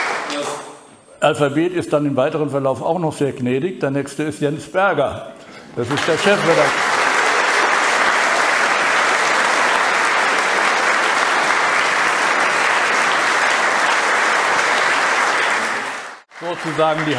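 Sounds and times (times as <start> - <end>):
audience applause: 0.0 - 0.5, 5.8 - 17.1
speech: 1.2 - 6.9, 16.5 - 17.1.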